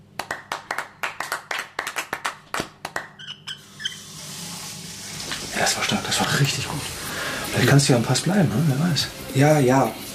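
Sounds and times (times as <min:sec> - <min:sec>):
applause for a team member: 0:00.2 - 0:03.2
speech: 0:05.7 - 0:10.0.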